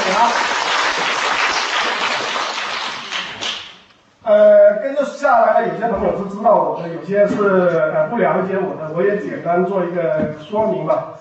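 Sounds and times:
audience applause: 0:00.0 - 0:03.7
speech: 0:00.1 - 0:01.2, 0:04.3 - 0:11.1.

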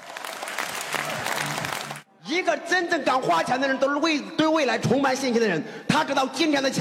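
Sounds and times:
audience applause: 0:00.0 - 0:02.0
speech: 0:02.4 - 0:06.7.

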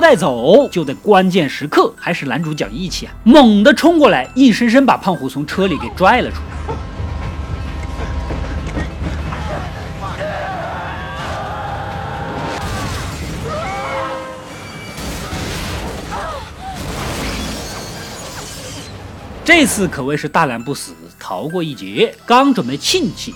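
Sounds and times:
speech: 0:00.1 - 0:06.8, 0:19.6 - 0:23.3
train rumbling and rattling past: 0:06.4 - 0:11.0
screeching metallic squeals: 0:17.2 - 0:19.3.

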